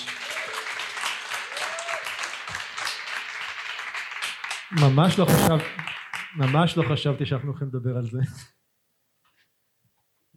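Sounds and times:
audience applause: 0:00.0 - 0:06.4
speech: 0:04.7 - 0:08.5.

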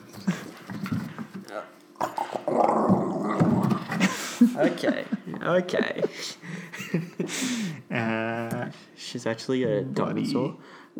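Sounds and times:
dog growling: 0:00.3 - 0:04.2
laughter: 0:03.8 - 0:08.0
speech: 0:04.6 - 0:10.9.

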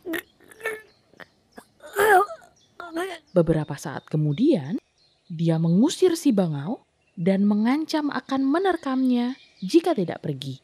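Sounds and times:
voice imitating a wolf coughing: 0:01.6 - 0:03.1
speech: 0:03.4 - 0:04.8, 0:05.4 - 0:10.6.

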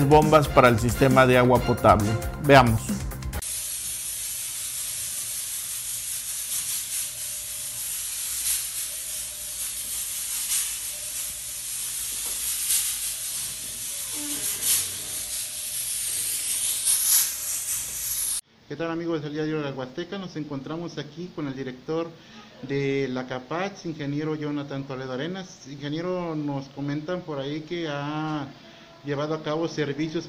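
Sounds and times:
speech: 0:00.0 - 0:03.0, 0:18.8 - 0:30.2
disinfectant spraying from a pressurized sprayer in offices: 0:03.4 - 0:18.4.

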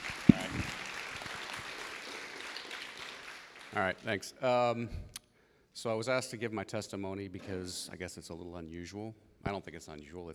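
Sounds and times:
round of applause: 0:00.0 - 0:04.1
speech: 0:03.7 - 0:05.1, 0:05.8 - 0:10.3.

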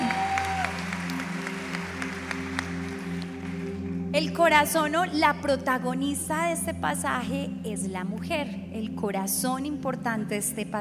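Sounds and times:
audience applause: 0:00.0 - 0:03.8
speech: 0:04.2 - 0:10.8.

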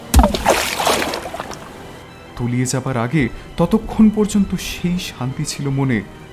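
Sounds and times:
body splashing into a river: 0:00.0 - 0:02.0
speech: 0:02.4 - 0:06.3.

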